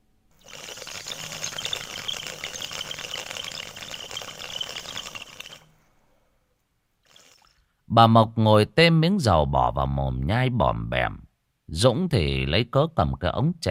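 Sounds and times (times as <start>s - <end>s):
bubbling draw on a bamboo water pipe: 0.4s - 5.7s, 7.0s - 7.6s
speech: 8.0s - 13.6s.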